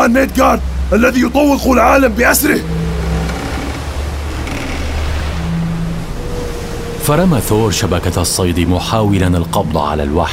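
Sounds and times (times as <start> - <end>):
huge ocean waves surging: 0.0 - 10.3
speech: 0.1 - 2.8, 7.1 - 10.3.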